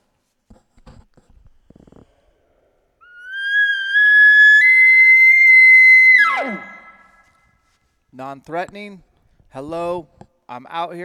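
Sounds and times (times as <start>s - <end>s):
imitated elk location bugle call: 3.0s - 7.4s
speech: 8.2s - 11.0s.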